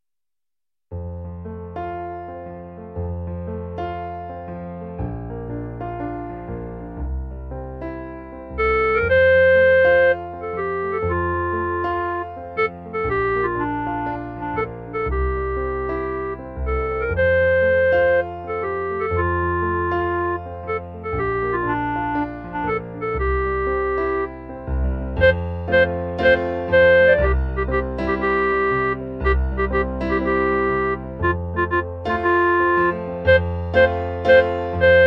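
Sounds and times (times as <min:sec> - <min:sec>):
clarinet: 0:08.5 - 0:35.0.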